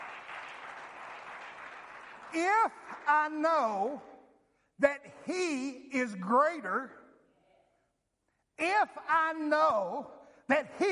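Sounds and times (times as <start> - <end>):
audience hand clapping: 0.0 - 3.4
speech: 2.3 - 4.1, 4.8 - 7.0, 8.6 - 10.9.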